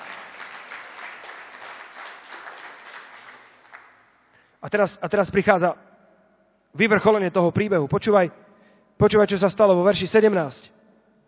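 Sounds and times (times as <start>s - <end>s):
steady crowd applause: 0.0s - 4.0s
speech: 4.6s - 5.9s, 6.8s - 8.4s, 9.0s - 10.8s.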